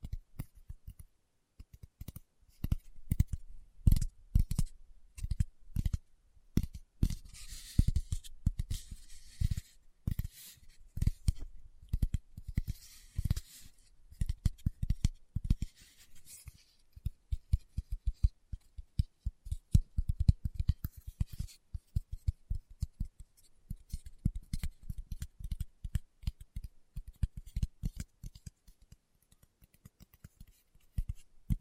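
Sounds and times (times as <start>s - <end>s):
fingertips tapping across a surface: 0.0s - 31.6s.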